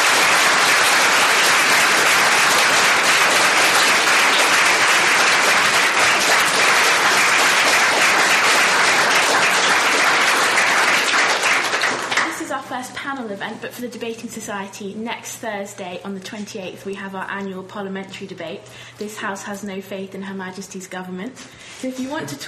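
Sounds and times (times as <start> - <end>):
audience applause: 0.0 - 12.4
speech: 13.3 - 22.4.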